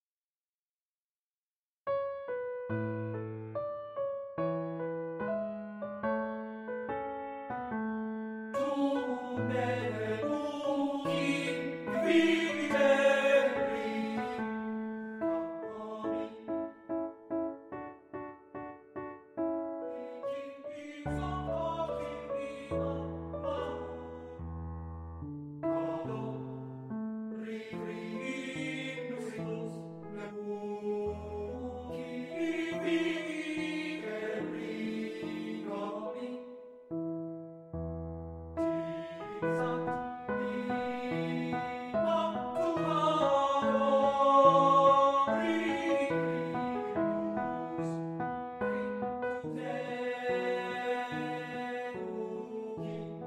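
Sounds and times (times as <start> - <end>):
piano: 1.8 - 53.2
person singing art song: 8.6 - 14.7, 15.3 - 16.8, 19.9 - 24.4, 25.7 - 26.6, 27.4 - 36.5, 38.6 - 48.0, 48.6 - 53.2.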